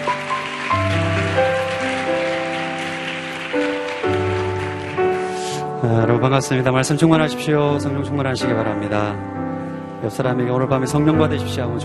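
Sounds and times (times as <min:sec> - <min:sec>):
audience applause: 0:00.0 - 0:05.7
speech: 0:05.9 - 0:09.4, 0:10.0 - 0:11.8.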